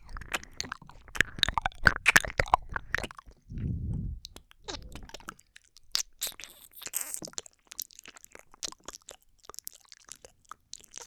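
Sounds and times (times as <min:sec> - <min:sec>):
gentle ear sucking in both ears: 0:00.1 - 0:04.3, 0:06.2 - 0:07.2
kissing sounds: 0:06.2 - 0:07.2.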